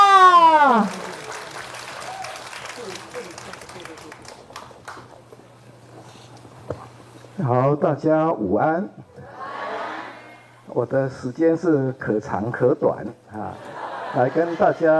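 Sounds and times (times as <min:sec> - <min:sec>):
warm audience applause: 0:00.0 - 0:05.0
speech: 0:07.7 - 0:09.0, 0:10.8 - 0:14.9
laughter: 0:13.4 - 0:14.9.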